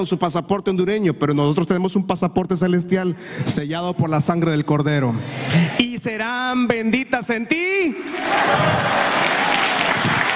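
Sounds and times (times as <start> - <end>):
speech: 0.0 - 9.1
audience applause: 8.0 - 10.3.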